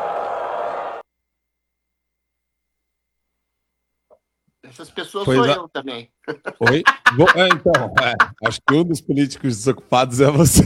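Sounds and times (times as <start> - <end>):
crowd booing: 0.0 - 1.0
speech: 4.6 - 10.6
laughter: 6.2 - 9.6.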